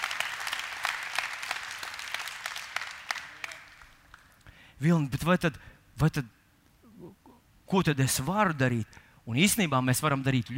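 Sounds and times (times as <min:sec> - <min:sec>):
audience applause: 0:00.0 - 0:04.3
speech: 0:04.8 - 0:06.4, 0:07.7 - 0:10.5.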